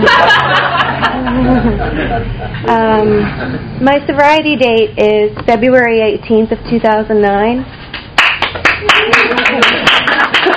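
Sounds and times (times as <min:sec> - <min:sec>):
laughter: 0:00.0 - 0:02.7, 0:08.9 - 0:10.5
speech: 0:02.2 - 0:07.8
audience clapping at a recovery meeting: 0:07.9 - 0:10.5.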